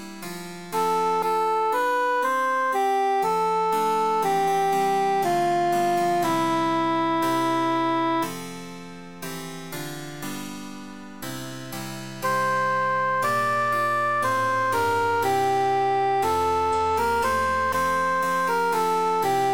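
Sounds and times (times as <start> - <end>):
emphasized cantus melody: 0.7 - 8.3, 12.2 - 19.5.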